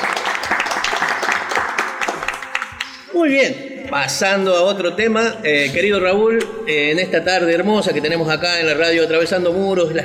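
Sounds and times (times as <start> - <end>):
applause: 0.0 - 3.1
speech: 3.2 - 10.0.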